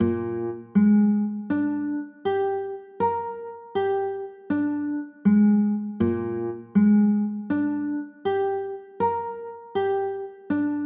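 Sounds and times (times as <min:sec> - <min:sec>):
B flat 9 chords: 0:00.0 - 0:10.8.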